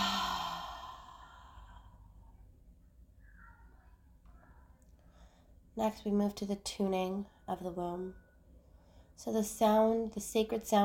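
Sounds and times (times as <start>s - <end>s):
slow exhale during guided womb-breathing meditation: 0.0s - 2.1s
speech: 5.8s - 8.2s, 9.2s - 10.8s.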